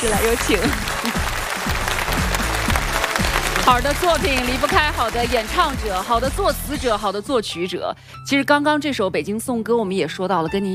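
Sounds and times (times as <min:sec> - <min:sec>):
speech: 0:00.0 - 0:01.8, 0:03.7 - 0:10.7
audience applauding a guest at a choir concert: 0:00.0 - 0:06.9.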